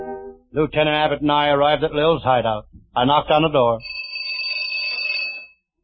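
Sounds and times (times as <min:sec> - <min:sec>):
speech: 0:00.6 - 0:03.9
doorbell ringing: 0:03.8 - 0:05.6.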